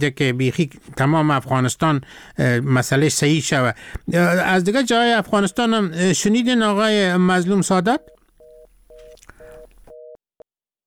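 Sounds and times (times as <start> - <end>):
speech: 0.0 - 8.2
telephone busy tone after a call is cut off: 4.8 - 7.1, 7.9 - 10.2.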